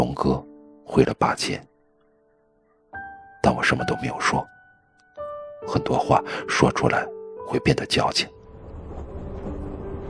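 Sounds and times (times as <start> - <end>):
speech: 0.2 - 1.7, 3.4 - 4.6, 5.6 - 8.4
train running on rails: 8.5 - 10.0.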